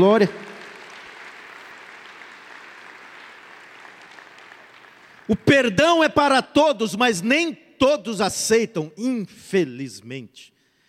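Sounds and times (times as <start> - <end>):
speech: 0.0 - 0.4, 5.3 - 10.5
audience applauding: 0.0 - 5.5.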